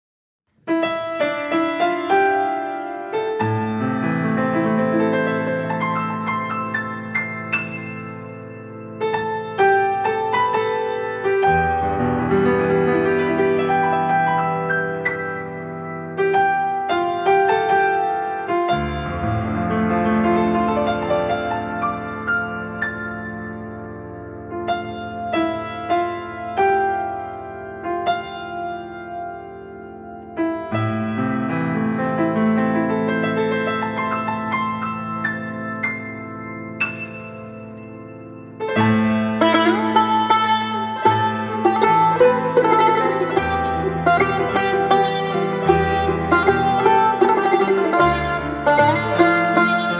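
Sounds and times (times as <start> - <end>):
piano: 0.5 - 49.9
tar lute: 39.4 - 49.9.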